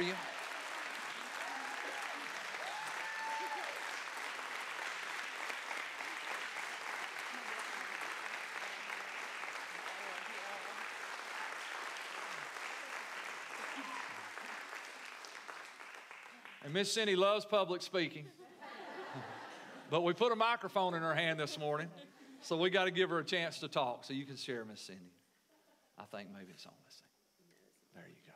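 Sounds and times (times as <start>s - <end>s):
speech: 0.0s - 0.3s, 16.7s - 18.4s, 19.9s - 25.2s, 26.0s - 27.1s
audience applause: 0.0s - 17.3s
laughter: 18.2s - 20.2s, 21.1s - 22.5s.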